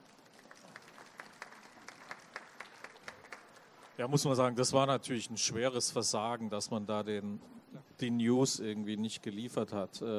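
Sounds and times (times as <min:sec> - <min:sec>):
audience clapping: 0:00.0 - 0:04.1
speech: 0:04.0 - 0:10.1.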